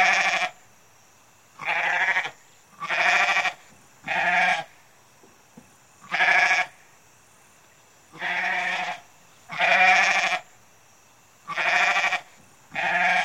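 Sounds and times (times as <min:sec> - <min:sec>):
goat bleating: 0:01.6 - 0:04.7, 0:06.0 - 0:06.7, 0:08.2 - 0:10.4, 0:11.5 - 0:13.2.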